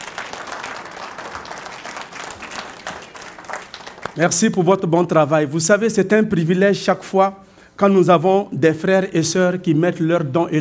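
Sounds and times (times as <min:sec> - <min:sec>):
audience applause: 0:00.0 - 0:04.4
speech: 0:04.2 - 0:10.5.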